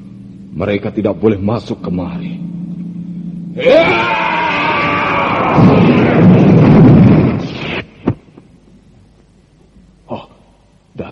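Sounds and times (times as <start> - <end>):
speech: 0.6 - 2.4, 3.6 - 4.3
wailing tone: 2.4 - 6.6
rumble of collapsing rock: 4.5 - 8.3.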